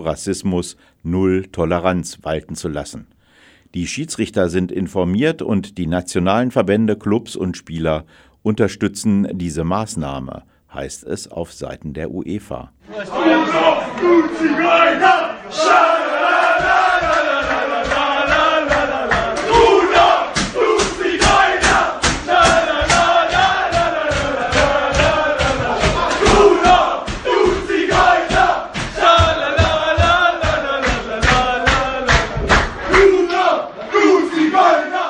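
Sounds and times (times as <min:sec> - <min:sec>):
speech: 0:00.0 - 0:16.1
football team chanting a celebratory song in locker room: 0:12.8 - 0:35.0
rapid rhythmic clapping or stomping: 0:15.6 - 0:35.0.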